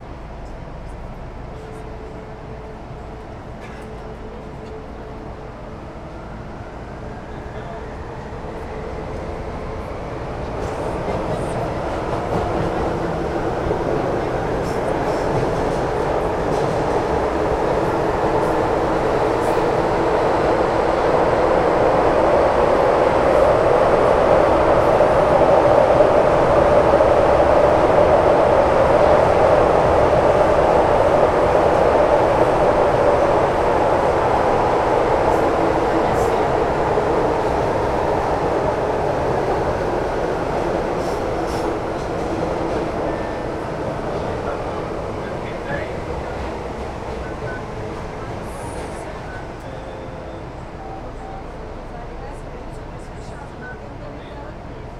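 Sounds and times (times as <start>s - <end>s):
Brasília underground metro train arriving at 110 Sul station, inside carriage: 0.0s - 54.9s.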